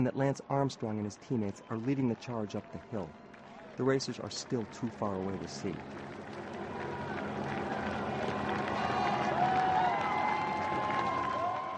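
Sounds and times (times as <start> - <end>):
speech: 0.0 - 3.2, 3.8 - 6.1
dense crowd clapping and cheering: 0.0 - 11.7
approaching helicopter engine drone: 5.4 - 11.2.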